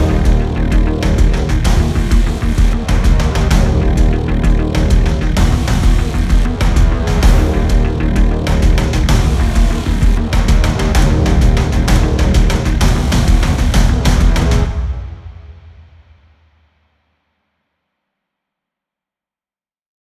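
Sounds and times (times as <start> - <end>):
action film battlefield sounds: 0.0 - 15.6.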